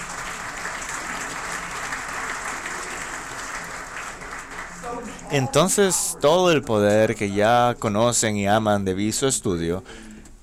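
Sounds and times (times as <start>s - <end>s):
audience applause: 0.0s - 6.4s
speech: 4.9s - 10.0s.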